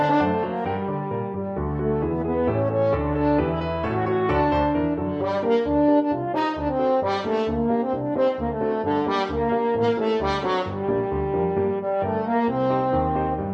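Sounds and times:
French horn: 0:00.0 - 0:01.1, 0:02.0 - 0:13.5.

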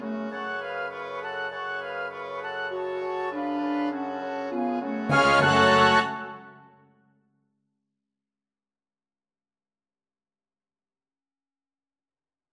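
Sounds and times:
orchestra playing ballet music: 0:00.2 - 0:06.8.

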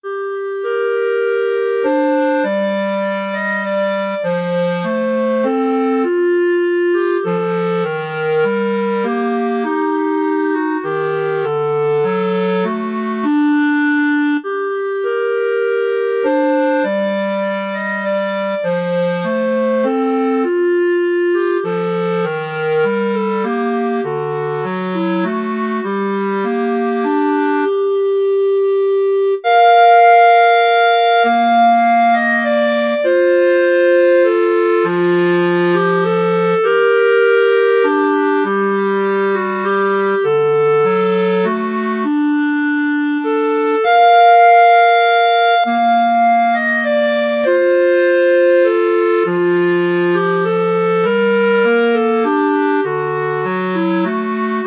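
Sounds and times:
clarinet duet: 0:00.0 - 0:54.6.

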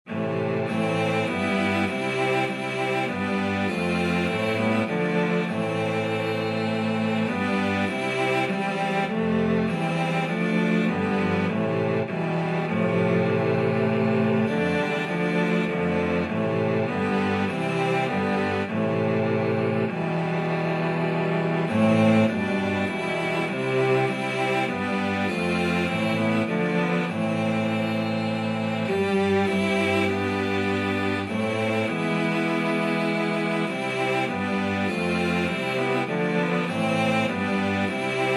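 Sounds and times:
cello quartet: 0:00.0 - 0:38.3.

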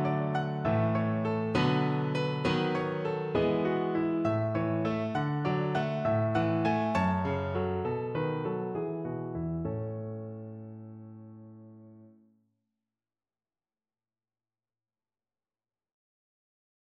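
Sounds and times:
piano tune: 0:00.0 - 0:12.1.

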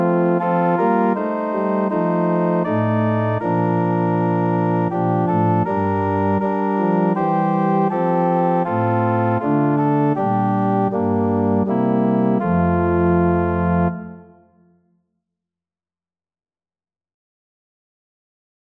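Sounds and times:
organ: 0:00.0 - 0:14.4.

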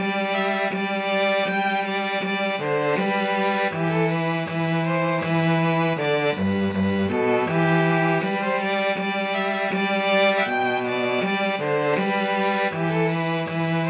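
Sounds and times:
string trio of two violins and cello playing: 0:00.0 - 0:13.8.

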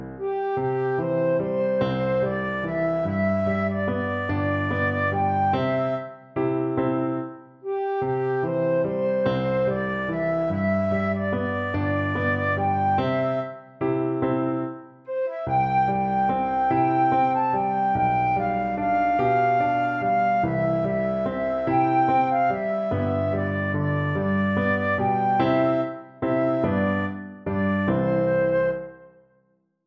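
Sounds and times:
flute: 0:00.2 - 0:29.3.

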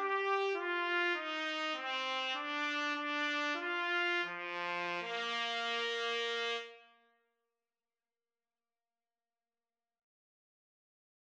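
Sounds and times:
trumpet duet: 0:00.0 - 0:06.9.

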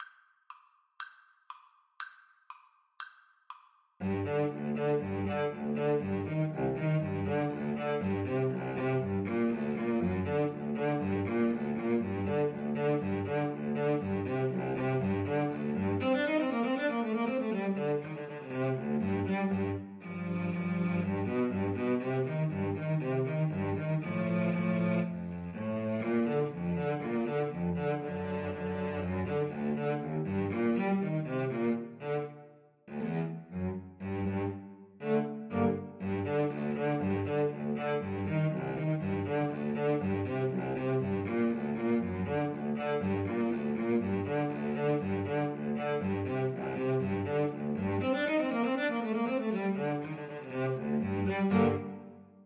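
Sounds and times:
cello duet: 0:04.0 - 0:52.4.

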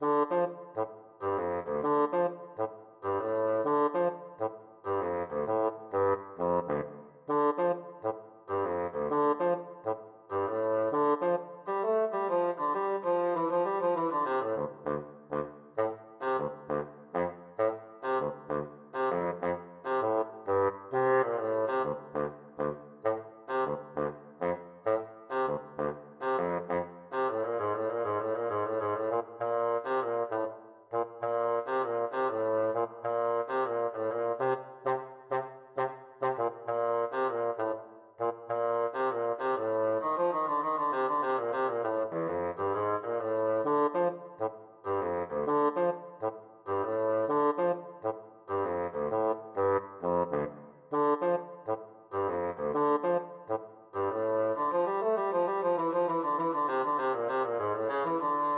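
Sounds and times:
bassoon playing a funk study: 0:00.0 - 0:58.5.

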